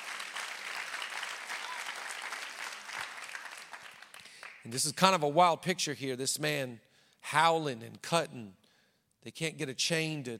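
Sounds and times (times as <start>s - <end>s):
audience clapping: 0.0s - 4.7s
speech: 4.7s - 8.6s, 9.2s - 10.3s.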